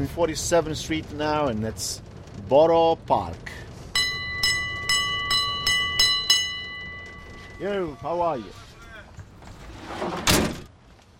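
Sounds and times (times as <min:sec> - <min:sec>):
speech: 0:00.0 - 0:03.6, 0:07.6 - 0:08.6
low rumble of a passing train on a city street: 0:00.0 - 0:08.5
bright metallic bell of a passing train clanging: 0:04.0 - 0:08.3.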